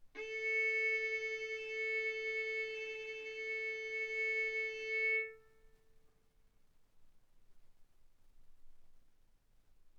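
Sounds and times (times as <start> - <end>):
violin bowed mezzo-forte on the A string, A4 and B4: 0.2 - 5.4.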